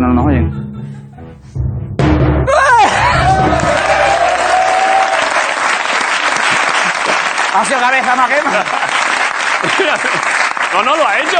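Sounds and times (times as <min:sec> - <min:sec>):
speech: 0:00.2 - 0:01.0, 0:07.6 - 0:09.0, 0:09.6 - 0:11.3
laughter: 0:02.6 - 0:11.3
audience applause: 0:02.9 - 0:11.3.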